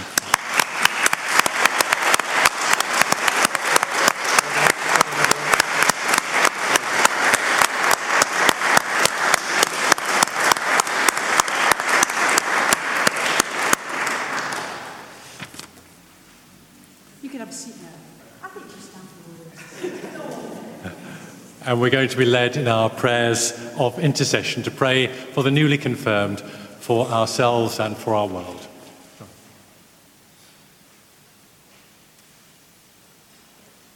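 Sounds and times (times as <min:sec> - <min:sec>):
audience applauding: 0:00.0 - 0:15.2
laughter: 0:04.3 - 0:05.9, 0:19.6 - 0:21.4
speech: 0:21.7 - 0:28.6.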